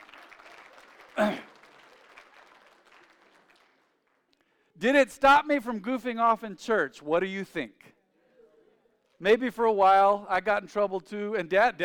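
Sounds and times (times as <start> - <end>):
audience clapping: 0.0 - 4.4
speech: 4.8 - 7.9, 9.2 - 11.8.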